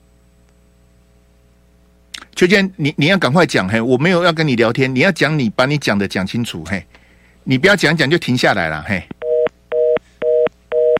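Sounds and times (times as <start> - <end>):
speech: 2.4 - 9.1
telephone busy tone beeps after a hang-up: 9.2 - 10.9.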